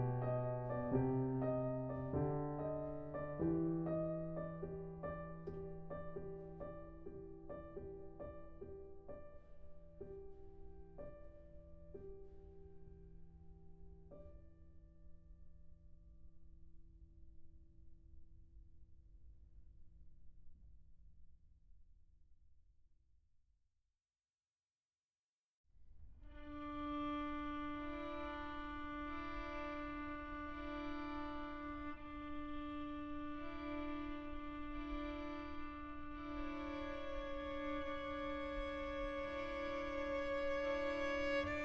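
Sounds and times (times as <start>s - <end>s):
piano quartet playing: 0.0s - 12.6s, 26.6s - 41.6s.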